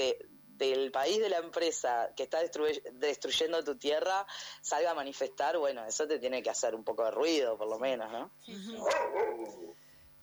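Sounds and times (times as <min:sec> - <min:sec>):
speech: 0:00.0 - 0:09.6
dogs barking: 0:08.8 - 0:09.7.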